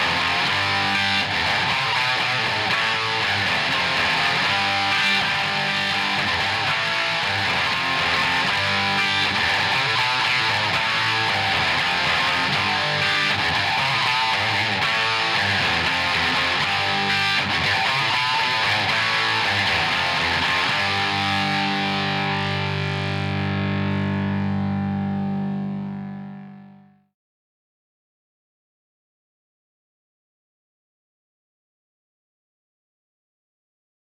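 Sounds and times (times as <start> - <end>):
guitar: 0.0 - 27.1.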